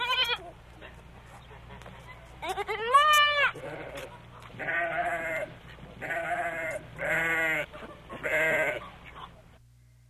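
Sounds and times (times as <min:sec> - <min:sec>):
sheep bleating: 0:02.4 - 0:08.9.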